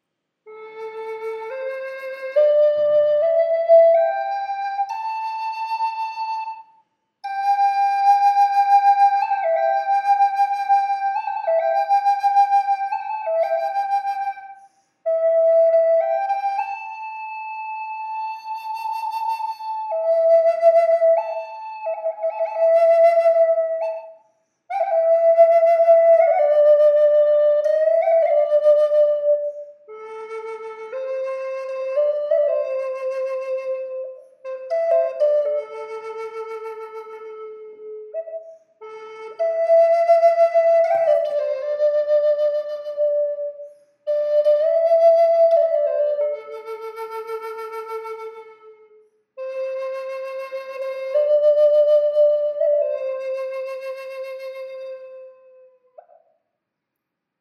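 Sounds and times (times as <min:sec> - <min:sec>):
flute with reverb: 0:00.5 - 0:56.3.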